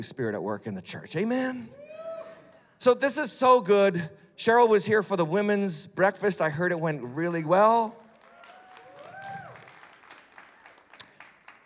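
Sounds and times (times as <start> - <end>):
speech: 0.0 - 1.8, 2.8 - 8.0
people clapping: 7.8 - 11.6.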